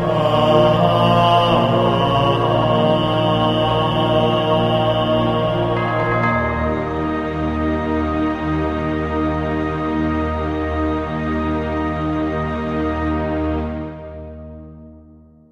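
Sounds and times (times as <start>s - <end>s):
choir: 0.0s - 14.2s.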